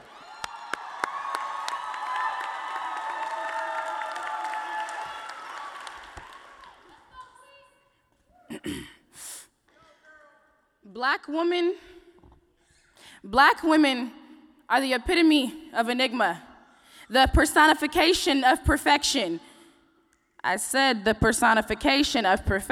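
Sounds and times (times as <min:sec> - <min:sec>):
audience applause and cheering: 0:00.0 - 0:07.3
speech: 0:11.0 - 0:11.9, 0:13.2 - 0:16.5, 0:17.1 - 0:19.5, 0:20.4 - 0:22.7.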